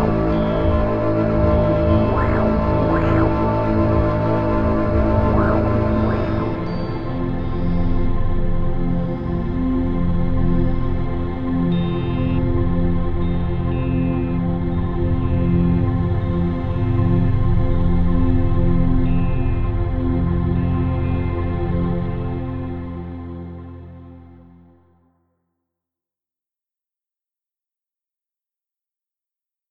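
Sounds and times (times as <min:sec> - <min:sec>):
dark synth pads: 0:00.0 - 0:22.9.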